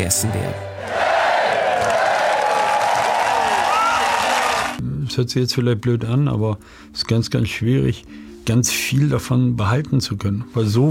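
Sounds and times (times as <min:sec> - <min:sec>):
speech: 0:00.0 - 0:01.0, 0:05.1 - 0:10.9
fans cheering a team at airport: 0:00.3 - 0:04.8.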